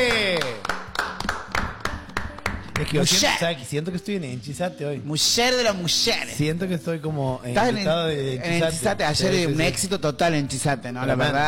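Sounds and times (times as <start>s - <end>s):
applause: 0.0s - 3.0s
speech: 2.9s - 11.4s.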